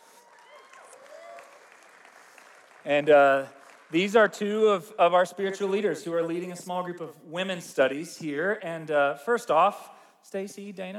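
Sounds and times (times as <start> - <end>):
people whooping: 0.0 - 1.8
audience applause: 0.0 - 4.0
speech: 2.8 - 10.9.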